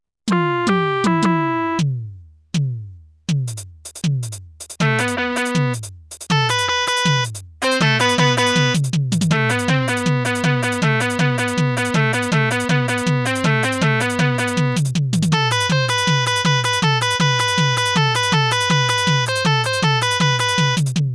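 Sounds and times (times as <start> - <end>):
background music: 0.3 - 2.2, 4.8 - 21.1.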